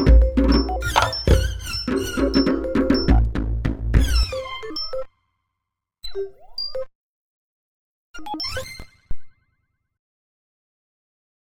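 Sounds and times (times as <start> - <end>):
dumbek goblet drum: 0.0 - 4.5.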